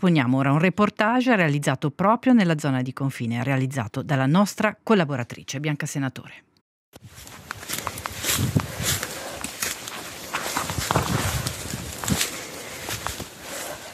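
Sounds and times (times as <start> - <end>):
speech: 0.0 - 7.8
footsteps in the Polish forest near the Belarus border: 7.0 - 13.9.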